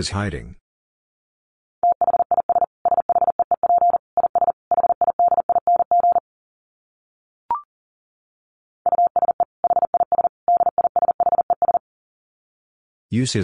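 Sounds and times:
Morse code beeps at 40 wpm: 1.8 - 6.2, 8.9 - 11.8.

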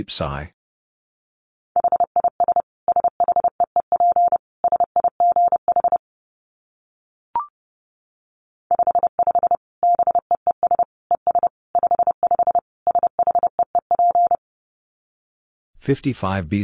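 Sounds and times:
speech: 0.0 - 0.6, 15.9 - 16.6
Morse code tones at 30 wpm: 1.8 - 6.0, 8.7 - 14.4.

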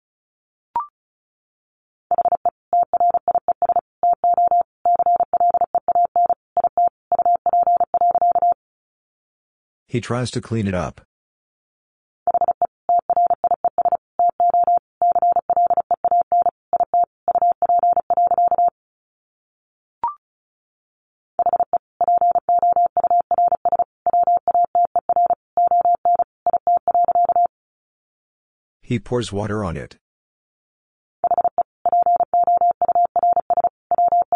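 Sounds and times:
Morse code beeps at 35 wpm: 2.1 - 8.6, 12.3 - 18.7, 21.4 - 27.5, 31.2 - 34.3
speech: 9.9 - 11.1, 28.9 - 30.0.

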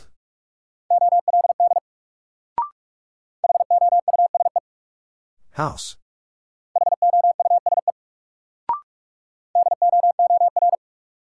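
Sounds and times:
Morse code word at 45 wpm at a single steady mid pitch: 0.9 - 1.8, 3.4 - 4.6, 6.8 - 7.9, 9.6 - 10.8
speech: 5.6 - 6.0.

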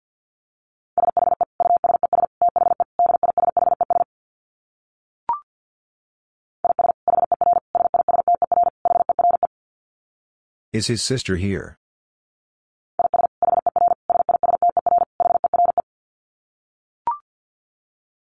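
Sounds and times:
rapid Morse code tones at 50 words per minute: 1.0 - 4.0, 6.6 - 9.5, 13.0 - 15.8
speech: 10.8 - 11.8.

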